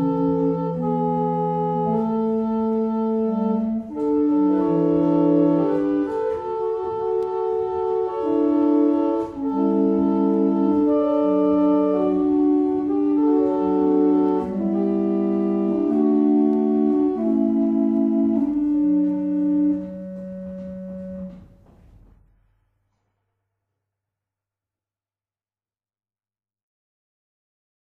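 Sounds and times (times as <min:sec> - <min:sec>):
barrel organs: 0:00.0 - 0:21.3.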